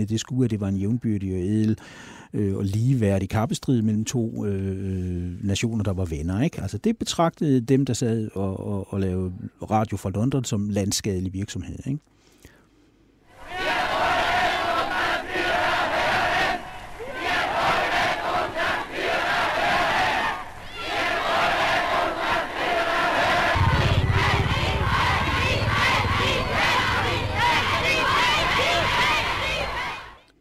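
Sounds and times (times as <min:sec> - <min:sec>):
speech: 0:00.0 - 0:12.2
crowd cheering outside a hotel: 0:13.4 - 0:30.3.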